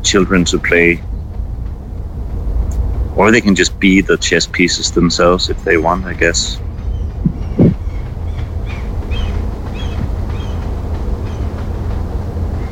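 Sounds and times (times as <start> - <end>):
background traffic in park: 0.0 - 12.7
wind in park: 0.0 - 12.7
speech: 0.1 - 1.1, 3.2 - 6.6.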